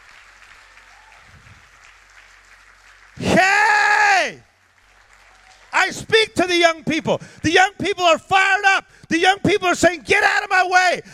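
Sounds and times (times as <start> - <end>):
crowd clapping: 0.0 - 8.3
crowd cheering and shouting: 3.2 - 4.4
speech: 5.9 - 11.1.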